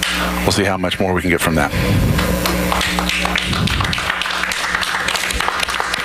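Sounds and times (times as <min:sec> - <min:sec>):
low constant hum: 0:00.0 - 0:06.0
speech: 0:00.2 - 0:04.2
scattered applause in mission control: 0:02.4 - 0:06.0.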